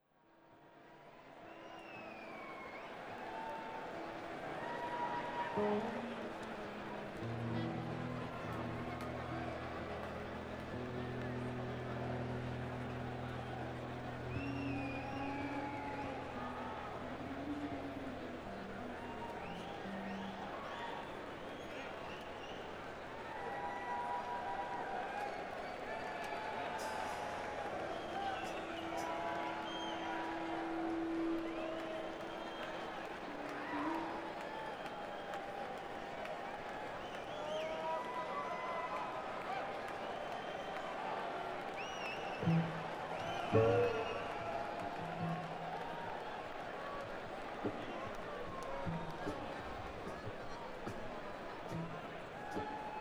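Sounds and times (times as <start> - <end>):
crowd: 0.0 - 53.0.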